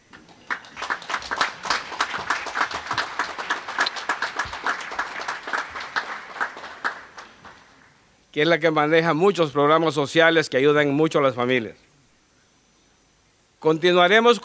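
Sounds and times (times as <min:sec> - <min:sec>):
audience applause: 0:00.1 - 0:07.9
speech: 0:08.4 - 0:11.8, 0:13.6 - 0:14.4.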